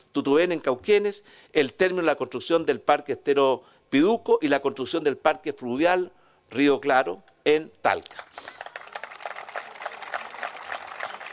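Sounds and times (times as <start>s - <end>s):
speech: 0.2s - 8.6s
senators applauding: 8.3s - 11.3s.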